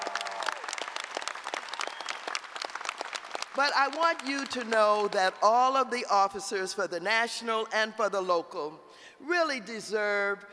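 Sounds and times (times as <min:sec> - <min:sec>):
audience applause: 0:00.0 - 0:04.5
speech: 0:03.6 - 0:10.5.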